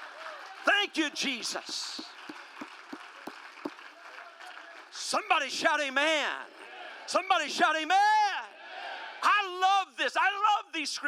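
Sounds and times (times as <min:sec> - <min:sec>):
crowd clapping: 0:00.0 - 0:05.4
speech: 0:00.8 - 0:02.2, 0:05.1 - 0:08.2, 0:09.5 - 0:11.0.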